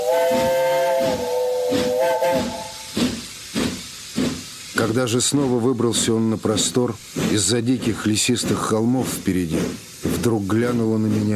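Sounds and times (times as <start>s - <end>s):
steam locomotive whistle as train departs: 0.0s - 3.0s
speech: 4.8s - 11.3s.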